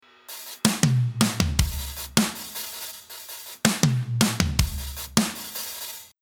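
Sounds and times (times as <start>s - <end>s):
hip hop groove: 0.3s - 6.1s.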